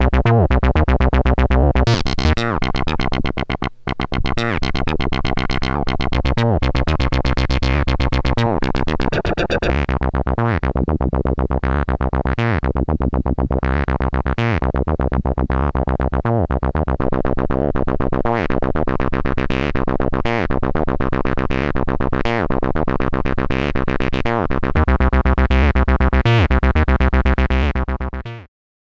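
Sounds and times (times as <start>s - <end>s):
dry mbsid synth bassline: 0.0s - 28.5s.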